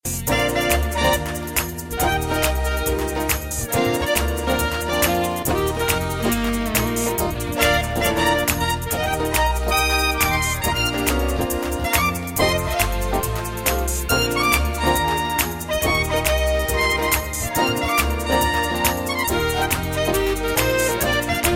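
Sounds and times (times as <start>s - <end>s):
jazz club music: 0.0s - 21.5s.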